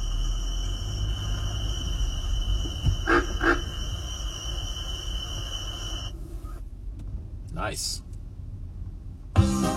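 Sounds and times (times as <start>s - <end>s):
cricket frog chorus: 0.0s - 6.1s
low rumble: 0.0s - 9.6s
speech: 7.6s - 8.1s.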